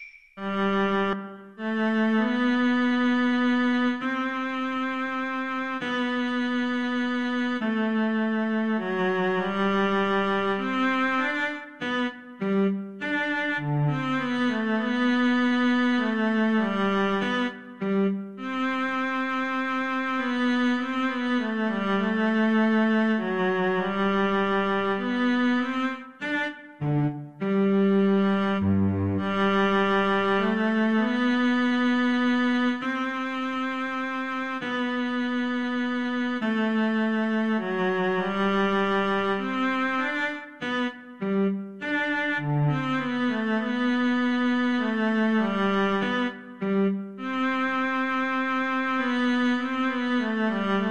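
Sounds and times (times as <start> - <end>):
violin duet playing a minuet: 0.4 - 50.8.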